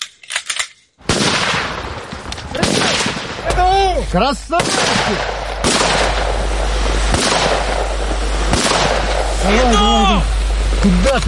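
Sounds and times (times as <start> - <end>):
live-fire gunshots during assault training: 1.0 - 3.7, 4.5 - 9.7
speech: 4.0 - 5.4, 9.4 - 11.2.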